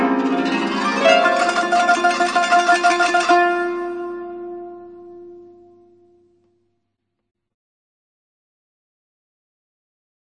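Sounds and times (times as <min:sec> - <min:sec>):
taqsim improvisation: 0:00.0 - 0:06.1.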